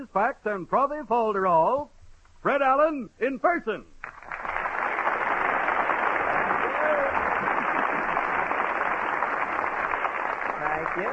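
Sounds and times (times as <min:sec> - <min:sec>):
speech: 0:00.0 - 0:03.9
studio audience applause: 0:04.0 - 0:11.1.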